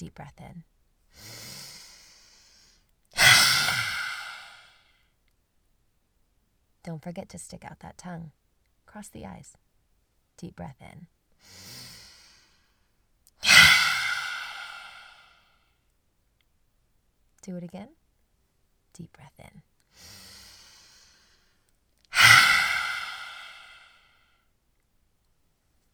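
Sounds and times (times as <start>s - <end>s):
lion's breath forceful exhale: 3.2s - 4.7s, 13.4s - 15.3s, 22.1s - 24.0s.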